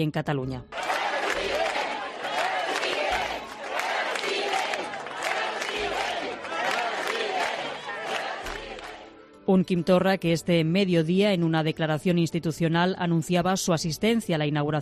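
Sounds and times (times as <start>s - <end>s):
speech: 0.0s - 0.8s, 9.5s - 14.8s
crowd at a protest rally applauding: 0.7s - 9.2s.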